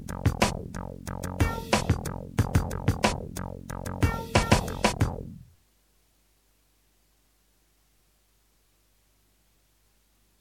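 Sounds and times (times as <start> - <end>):
music beat: 0.0 - 5.4.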